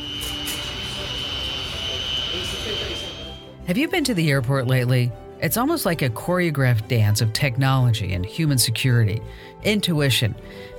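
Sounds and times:
aircraft jet engines roaring at an airport: 0.0s - 3.4s
speech: 2.4s - 3.1s, 3.7s - 10.7s.

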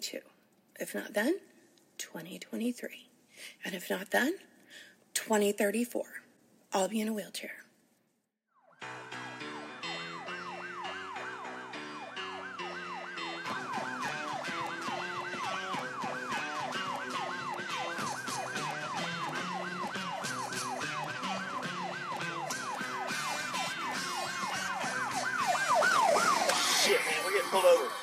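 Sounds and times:
speech: 0.0s - 7.6s
police car siren yelping: 8.7s - 28.0s.

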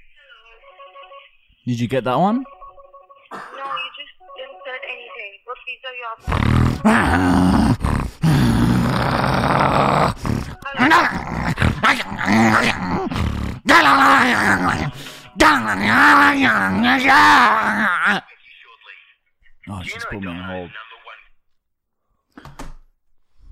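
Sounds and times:
speech: 1.2s - 2.6s, 6.2s - 7.7s, 13.8s - 18.3s, 19.7s - 20.8s
person imitating a dog with growls, howls and yelps: 6.2s - 18.2s.

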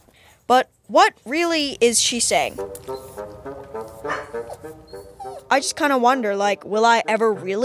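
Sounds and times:
speech: 0.5s - 3.3s, 5.5s - 7.6s
dog barking: 4.0s - 5.5s.

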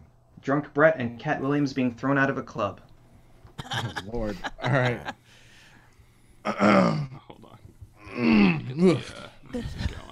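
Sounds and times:
speech: 0.4s - 2.9s, 3.6s - 5.2s, 6.4s - 7.2s, 8.2s - 10.0s
laughter: 3.6s - 5.3s
loud yawn while stretching: 8.0s - 8.9s.

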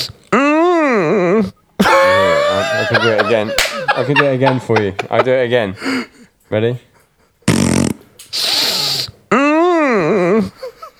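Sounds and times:
loud wavering moan rising and falling in pitch: 0.3s - 2.9s, 9.3s - 10.7s
laughter: 1.8s - 6.2s
speech: 2.8s - 6.9s
voice imitating a short buzzy fart: 7.4s - 9.1s
voice making a long hissing sniff: 8.3s - 9.2s.

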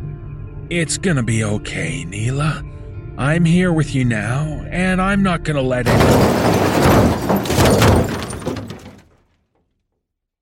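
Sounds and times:
speech: 0.7s - 7.8s
glass shattering: 5.9s - 9.0s
car struck from the side: 5.9s - 9.2s.

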